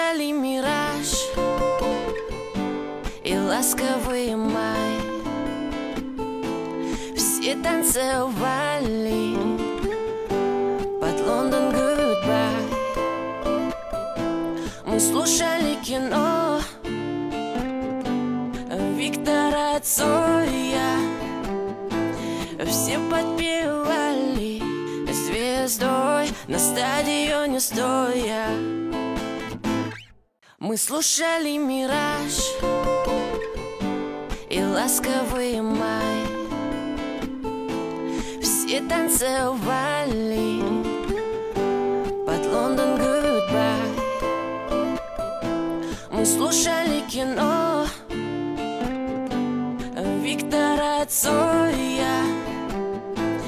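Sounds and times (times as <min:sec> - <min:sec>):
acoustic music: 0:00.2 - 0:30.1, 0:31.8 - 0:53.4.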